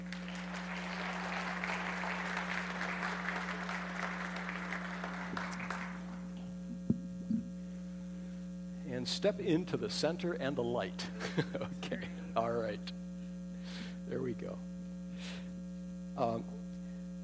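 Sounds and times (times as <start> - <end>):
church congregation applause as a couple steps up to the platform: 0.0 - 6.3
constant low electrical hum: 0.0 - 17.2
speech: 9.0 - 13.0, 14.1 - 14.7, 16.2 - 16.5
laughter: 11.0 - 12.3.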